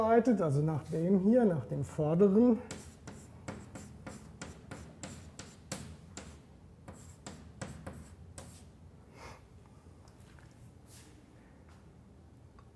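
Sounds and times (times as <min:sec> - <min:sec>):
speech: 0:00.0 - 0:02.8
writing scratching on a board during a maths lecture: 0:02.6 - 0:08.7.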